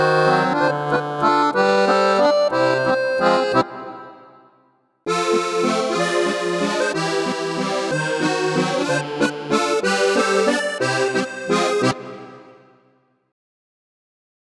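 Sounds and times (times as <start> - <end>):
Yamaha Tyros3 accordion sound: 0.0 - 4.5, 5.1 - 12.8.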